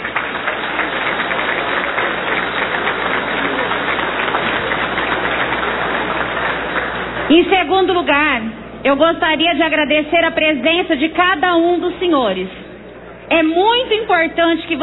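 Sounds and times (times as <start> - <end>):
audience applause: 0.0 - 7.3
speech: 7.3 - 12.6, 13.3 - 14.8.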